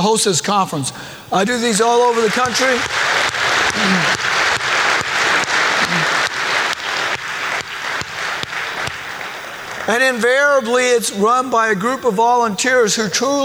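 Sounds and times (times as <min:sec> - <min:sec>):
speech: 0:00.0 - 0:04.4, 0:09.9 - 0:13.4
laughter: 0:00.7 - 0:13.4
low voices or whoops from the crowd: 0:01.3 - 0:13.4
sustained audience applause: 0:01.4 - 0:11.6.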